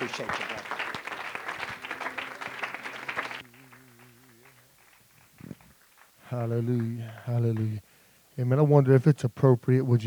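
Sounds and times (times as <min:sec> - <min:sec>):
church congregation applauding a guest preacher: 0:00.0 - 0:07.8
speech: 0:00.1 - 0:00.5, 0:06.3 - 0:10.0.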